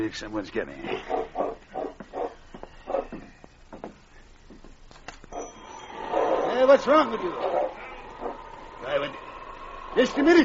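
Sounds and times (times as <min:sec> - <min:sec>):
speech: 0:00.0 - 0:01.3, 0:06.7 - 0:07.6, 0:10.0 - 0:10.4
dog barking: 0:01.0 - 0:03.2, 0:05.3 - 0:08.4.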